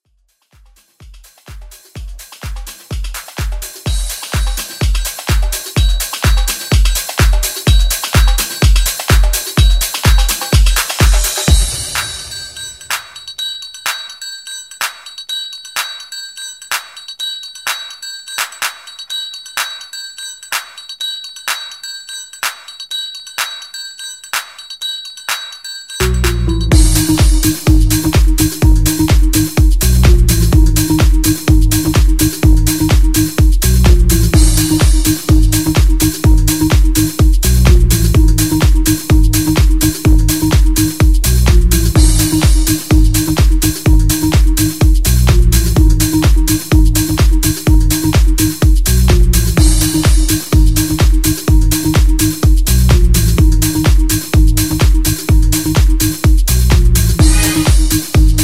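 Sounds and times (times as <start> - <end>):
disco mix: 0.0 - 13.4, 26.0 - 58.4.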